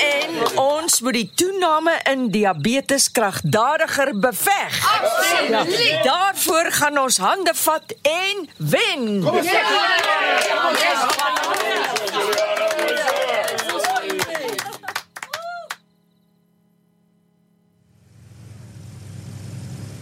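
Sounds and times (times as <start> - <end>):
laughter: 0.0 - 0.7, 4.8 - 6.3, 9.3 - 15.6
standing ovation applause: 0.0 - 0.7, 9.6 - 15.8
speech: 0.6 - 12.4
cheering and whoops: 9.7 - 15.8
steady low rumble of noise: 17.8 - 20.0.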